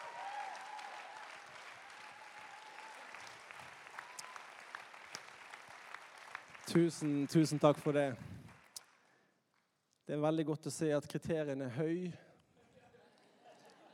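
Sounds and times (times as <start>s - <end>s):
audience applause: 0.0s - 8.8s
speech: 6.7s - 8.3s, 10.1s - 12.2s.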